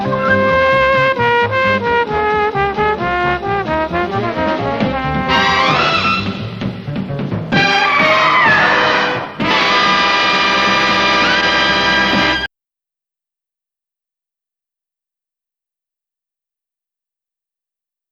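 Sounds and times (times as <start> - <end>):
end theme music: 0.0 - 12.5.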